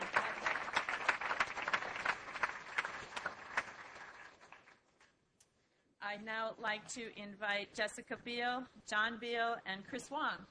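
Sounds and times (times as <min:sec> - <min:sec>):
audience applause: 0:00.0 - 0:04.8
speech: 0:06.1 - 0:10.5.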